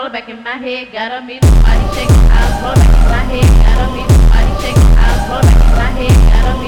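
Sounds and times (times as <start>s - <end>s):
phonk music: 1.4s - 6.6s.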